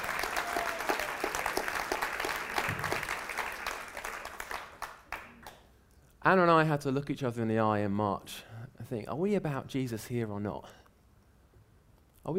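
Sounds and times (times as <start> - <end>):
audience clapping: 0.0 - 5.7
speech: 6.2 - 10.8.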